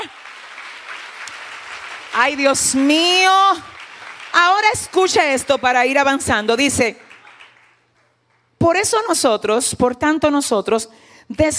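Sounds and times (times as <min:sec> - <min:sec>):
applause: 0:00.0 - 0:08.6
speech: 0:02.2 - 0:03.8, 0:04.4 - 0:07.0, 0:08.6 - 0:11.5.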